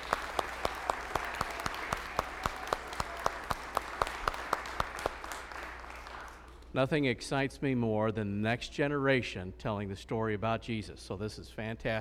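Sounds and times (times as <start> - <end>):
audience applause: 0.0 - 6.7
speech: 6.8 - 11.9.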